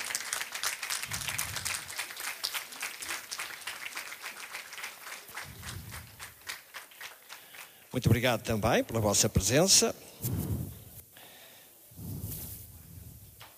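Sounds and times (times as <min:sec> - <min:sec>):
audience applause: 0:00.0 - 0:07.9
speech: 0:07.9 - 0:10.6.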